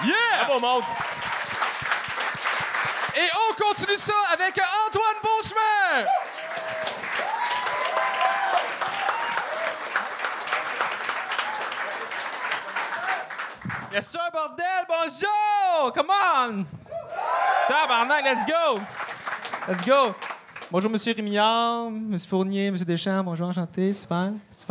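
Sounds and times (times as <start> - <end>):
speech: 0.0 - 1.1, 3.2 - 6.3, 14.0 - 16.8, 17.7 - 19.0, 19.7 - 24.6
audience applause and cheering: 0.0 - 4.9, 5.6 - 14.0, 16.9 - 20.7.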